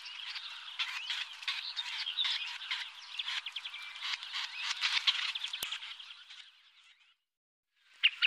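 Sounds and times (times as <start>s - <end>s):
Syrian woodpecker chattering and kik calls: 0.0s - 5.9s.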